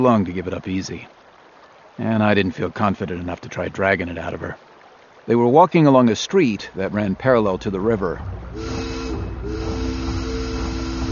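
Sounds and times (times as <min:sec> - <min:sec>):
speech: 0:00.0 - 0:01.2, 0:02.0 - 0:08.8
hissing rumble: 0:06.6 - 0:11.1
big boat's steam whistle: 0:08.5 - 0:11.1.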